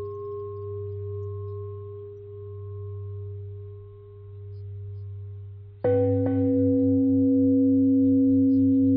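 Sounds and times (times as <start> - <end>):
long simple bell ringing: 5.9 - 8.9.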